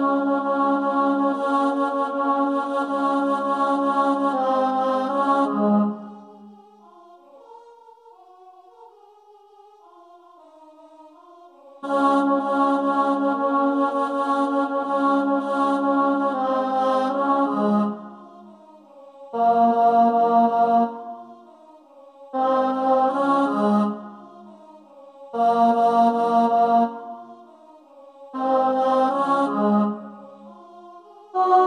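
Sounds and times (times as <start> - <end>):
choir with alto singing: 0.0 - 8.1, 11.5 - 18.6, 19.3 - 21.3, 22.3 - 24.6, 25.3 - 27.2, 28.3 - 31.6.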